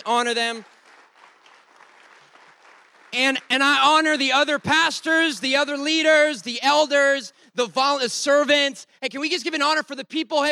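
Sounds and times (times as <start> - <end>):
speech: 0.0 - 0.8, 3.1 - 10.5
audience clapping: 0.0 - 6.3.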